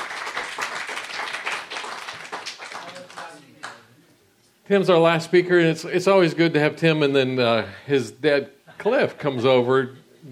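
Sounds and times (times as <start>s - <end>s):
audience applause: 0.0s - 3.8s
speech: 4.7s - 10.3s.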